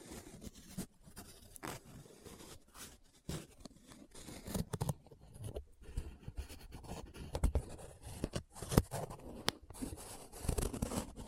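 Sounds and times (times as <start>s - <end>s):
paper rubbed and scratched: 0.0s - 11.2s.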